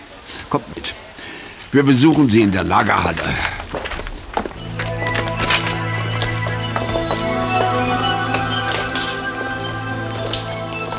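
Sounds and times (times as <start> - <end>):
speech: 0.5 - 1.0, 1.7 - 3.6
footsteps descending a staircase to a basement warehouse: 0.6 - 10.9
constant tonal drone: 3.5 - 10.9.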